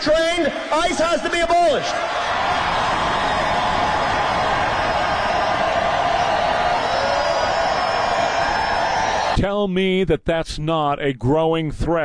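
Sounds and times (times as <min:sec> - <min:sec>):
speech: 0:00.0 - 0:02.3, 0:09.4 - 0:12.0
enthusiastic crowd cheering: 0:00.7 - 0:09.4.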